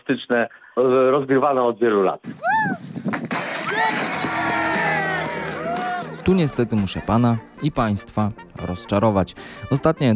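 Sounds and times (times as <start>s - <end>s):
speech: 0.1s - 2.9s, 6.3s - 10.1s
rattling debris: 3.1s - 4.9s
television smashed with a thrown hammer: 3.3s - 5.0s.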